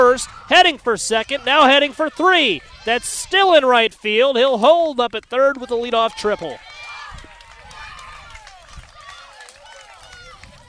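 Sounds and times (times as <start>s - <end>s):
baseball crowd cheering wildly: 0.0s - 4.2s, 5.4s - 10.6s
speech: 0.2s - 6.7s.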